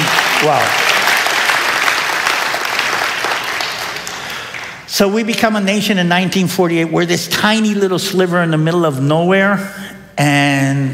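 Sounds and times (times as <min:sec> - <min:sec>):
audience applause: 0:00.0 - 0:04.9
speech: 0:00.4 - 0:00.8, 0:04.9 - 0:10.9.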